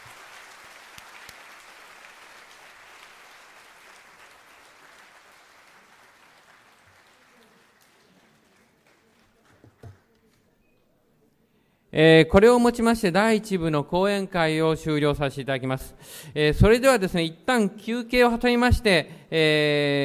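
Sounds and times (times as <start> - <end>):
audience applause: 0.0 - 10.2
speech: 11.9 - 20.0.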